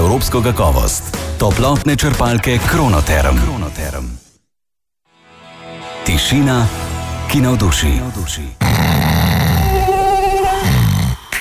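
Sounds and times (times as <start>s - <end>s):
speech: 0.2s - 4.2s, 6.1s - 8.9s
mosquito whining: 8.6s - 11.2s.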